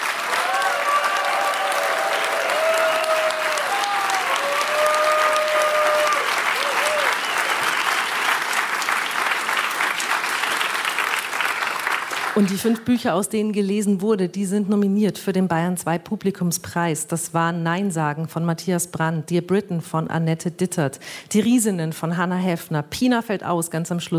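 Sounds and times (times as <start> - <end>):
audience applause: 0.0 - 13.0
speech: 12.4 - 24.1.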